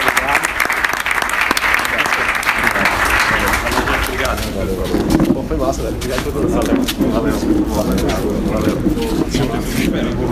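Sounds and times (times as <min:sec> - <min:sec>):
audience applause: 0:00.0 - 0:04.6
speech: 0:04.6 - 0:10.3.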